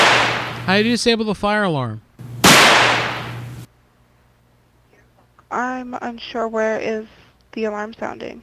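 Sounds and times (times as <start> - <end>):
firework bang with sharp crack: 0.0 - 0.7, 2.4 - 3.6
speech: 0.7 - 2.0, 5.5 - 8.4.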